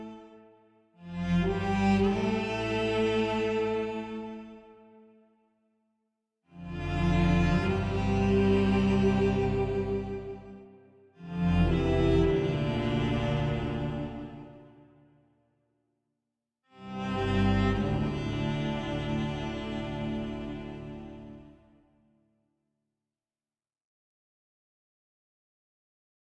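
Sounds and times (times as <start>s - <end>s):
cello: 0.0s - 5.2s, 6.5s - 15.1s, 16.7s - 21.9s.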